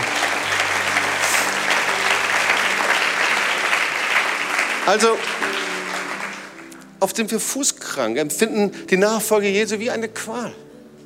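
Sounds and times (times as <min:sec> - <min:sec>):
audience applause: 0:00.0 - 0:06.9
speech: 0:04.9 - 0:05.4, 0:07.0 - 0:10.6.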